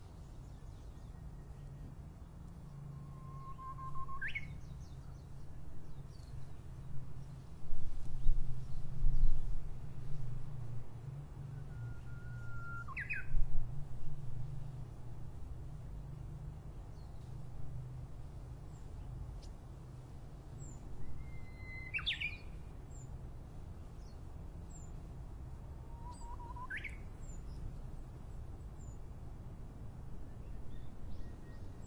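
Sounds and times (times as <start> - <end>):
Japanese bush warbler singing: 0.0 - 31.8
faint bird chirps: 2.9 - 5.1, 11.6 - 13.4, 20.6 - 22.6, 25.9 - 27.6.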